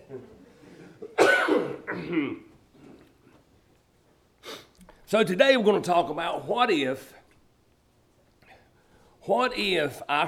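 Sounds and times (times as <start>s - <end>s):
speech: 0.1s - 0.4s, 2.0s - 2.5s, 5.1s - 7.2s, 9.3s - 10.2s
person coughing after choking: 0.9s - 3.0s.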